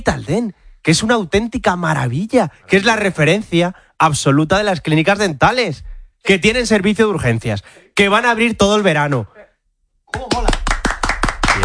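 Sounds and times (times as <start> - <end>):
speech: 0.0 - 9.3
audience applause: 10.2 - 11.6.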